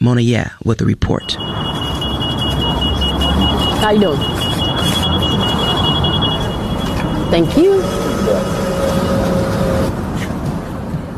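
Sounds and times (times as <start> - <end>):
speech: 0.0 - 1.5, 3.8 - 4.5, 7.3 - 8.6
high mechanical whine of bus lift or ramp motor: 1.2 - 10.2
city bus engine rumble: 1.2 - 11.1.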